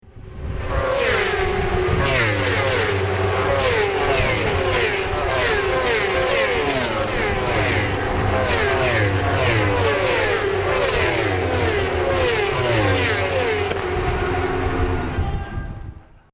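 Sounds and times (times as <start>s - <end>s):
racing sound effect: 0.6s - 15.4s.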